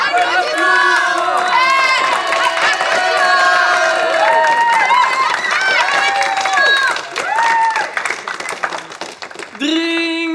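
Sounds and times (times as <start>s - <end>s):
crowd cheering and whooping: 0.0s - 8.1s
audience clapping: 0.0s - 10.2s.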